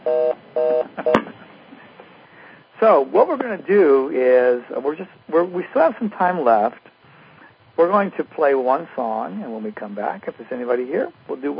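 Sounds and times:
telephone line electronic beeps after the caller hung up: 0.1 - 1.2
speech: 2.8 - 6.9, 7.8 - 11.5.

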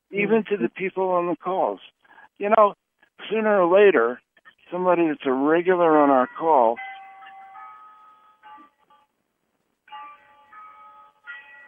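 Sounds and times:
speech: 0.1 - 6.9
clock chiming a melodic tune: 6.2 - 9.1, 9.9 - 11.6.

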